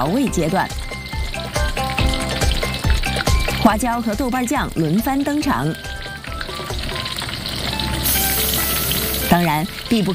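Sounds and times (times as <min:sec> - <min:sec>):
speech: 0:00.0 - 0:00.9, 0:03.6 - 0:05.9, 0:09.3 - 0:10.1
chicken frying in hot oil: 0:00.0 - 0:10.1.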